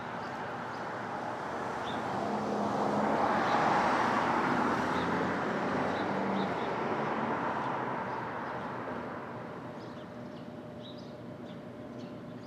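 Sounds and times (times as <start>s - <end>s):
street traffic at dawn in Brooklyn: 0.0s - 12.4s
vehicle passing: 1.1s - 9.4s.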